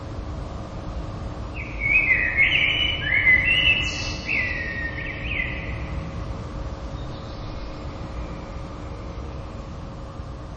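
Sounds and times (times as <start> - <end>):
common blackbird song: 1.5 - 6.2, 6.8 - 9.6.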